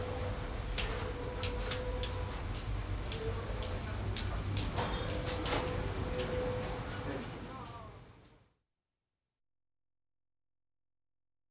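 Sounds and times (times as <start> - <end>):
train interior ambience: 0.0 - 8.0.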